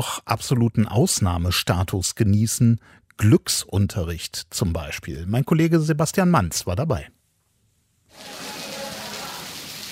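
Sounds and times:
speech: 0.0 - 7.2
monsoon rain splashing outside windows: 8.1 - 9.9.

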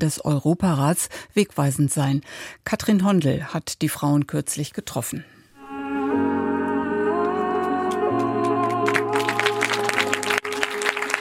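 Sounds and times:
speech: 0.0 - 5.4
film music in a cinema: 5.6 - 11.1
audience applause in a cinema: 7.9 - 11.1.

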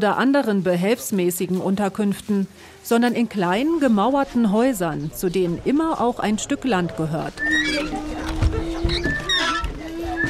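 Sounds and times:
speech: 0.0 - 9.1
murmuring voices: 3.4 - 10.2
sheet-metal door creaking and squealing: 7.3 - 10.2.

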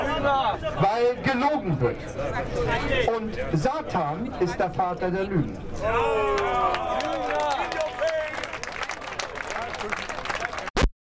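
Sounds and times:
speech: 0.2 - 7.6
audience applause: 6.4 - 10.7.

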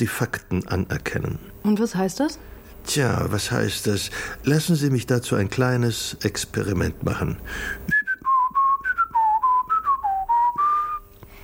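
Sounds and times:
speech: 0.0 - 8.0
well-known ringtone melody whistled by a person: 7.9 - 11.1.

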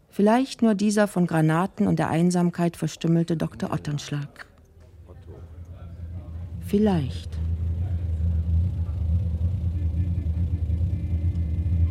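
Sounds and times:
speech: 0.2 - 4.5, 6.7 - 7.4
car engine running: 5.0 - 11.8.

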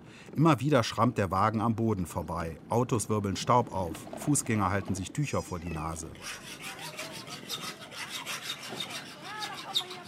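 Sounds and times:
speech: 0.4 - 6.8
sandpaper scouring a pot: 6.1 - 10.0.

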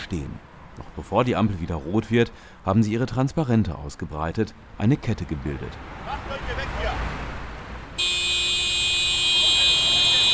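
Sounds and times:
speech: 0.1 - 7.0
car horns honking in a traffic jam: 7.9 - 10.3.

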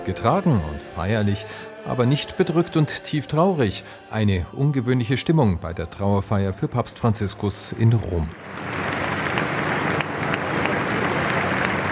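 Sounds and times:
speech: 0.0 - 8.9
large crowd applauding in an open square: 8.3 - 11.8.

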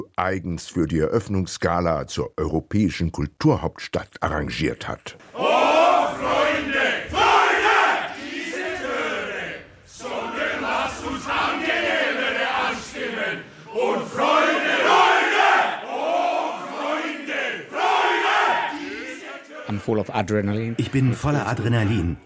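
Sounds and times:
speech: 0.0 - 5.6, 19.8 - 22.2
choir of many voices shouting in unison: 5.3 - 19.7.

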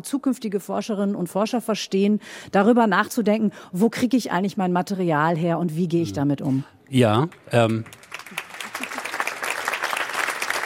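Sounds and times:
speech: 0.0 - 8.1
lecture audience applause: 7.5 - 10.6.

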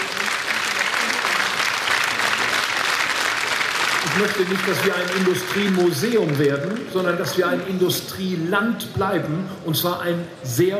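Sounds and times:
audience applause: 0.0 - 7.7
speech: 4.2 - 10.7.

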